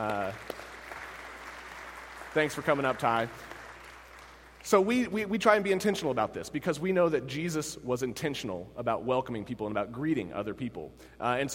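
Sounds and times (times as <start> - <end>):
round of applause: 0.0 - 5.1
speech: 2.3 - 3.5, 4.6 - 11.5.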